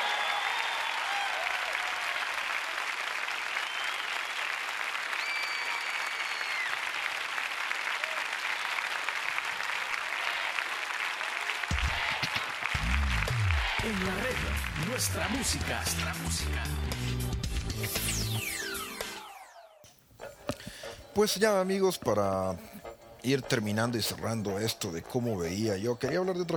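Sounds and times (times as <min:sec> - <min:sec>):
audience applause: 0:00.0 - 0:15.9
faint whistles: 0:03.5 - 0:04.3, 0:05.2 - 0:06.8
speech: 0:13.9 - 0:18.7, 0:21.2 - 0:26.5.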